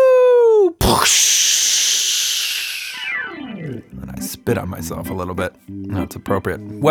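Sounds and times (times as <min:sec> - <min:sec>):
voice imitating whooshing down a water slide: 0:00.8 - 0:04.0
speech: 0:04.5 - 0:06.8.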